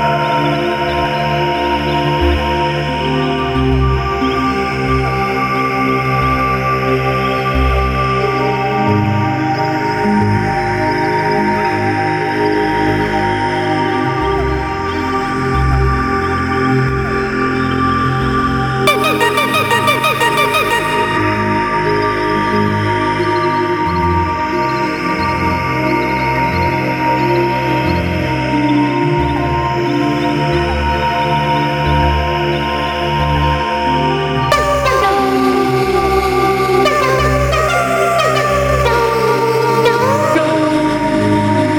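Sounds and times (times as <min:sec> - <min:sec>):
vocal music: 0:00.0 - 0:41.7.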